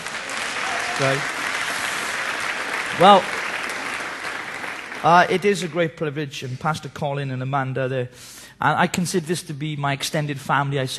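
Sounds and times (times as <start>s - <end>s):
audience applause: 0.0s - 5.8s
speech: 1.0s - 1.4s, 3.0s - 3.4s, 5.0s - 10.9s.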